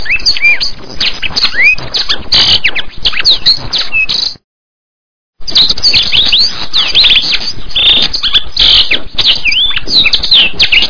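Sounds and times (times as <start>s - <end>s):
masteran bird song of swooping whistles, sharp chips and rapid trills: 0.0s - 4.4s, 5.4s - 10.8s.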